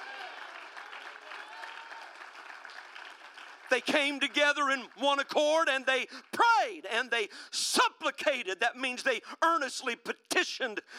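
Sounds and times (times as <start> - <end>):
audience clapping: 0.0 - 6.5
speech: 3.7 - 10.9.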